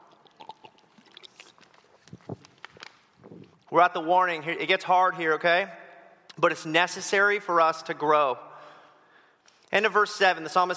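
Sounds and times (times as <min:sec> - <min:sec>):
person sipping water: 0:00.0 - 0:03.7
speech: 0:03.7 - 0:05.8, 0:06.4 - 0:08.5, 0:09.7 - 0:10.7.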